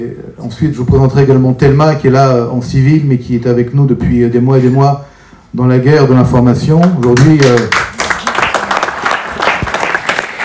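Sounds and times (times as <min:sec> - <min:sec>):
speech: 0:00.0 - 0:07.8
crowd applause: 0:06.8 - 0:10.4.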